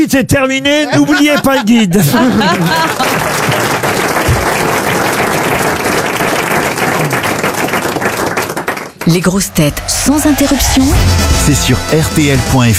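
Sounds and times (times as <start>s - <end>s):
speech: 0.0s - 3.7s, 9.1s - 12.7s
laughter: 0.7s - 3.8s
audience applause: 2.2s - 9.4s.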